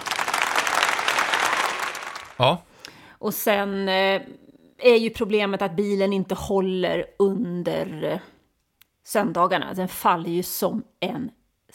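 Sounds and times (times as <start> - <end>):
group applause: 0.0 - 2.6
speech: 2.4 - 8.3, 9.0 - 11.7.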